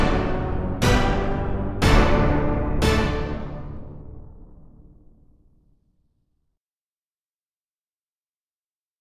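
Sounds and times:
orchestra hit: 0:00.0 - 0:05.3.

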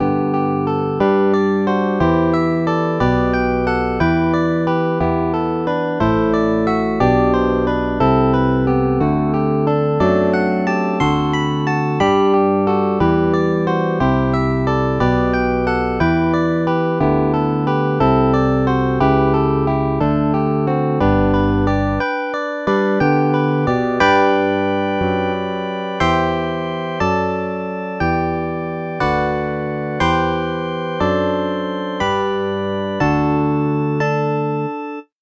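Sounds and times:
fingered bass guitar: 0:00.0 - 0:22.0, 0:23.0 - 0:34.4.

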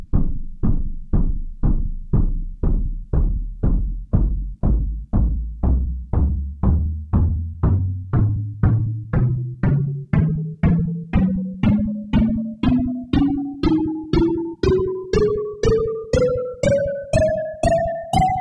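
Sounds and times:
taiko drum: 0:00.2 - 0:18.3.

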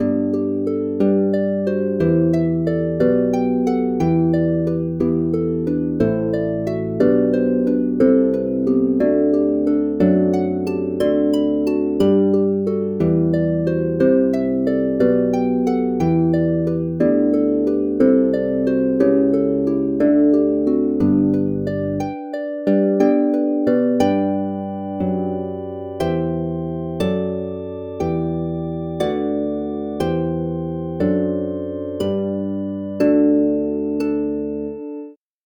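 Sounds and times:
harp: 0:00.0 - 0:35.2.

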